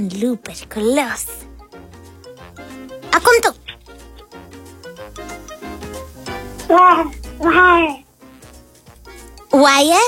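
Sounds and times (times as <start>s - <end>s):
speech: 0.2s - 1.5s, 3.3s - 3.6s, 6.7s - 8.0s, 9.5s - 10.0s
person imitating a tiger's roar: 6.7s - 8.1s.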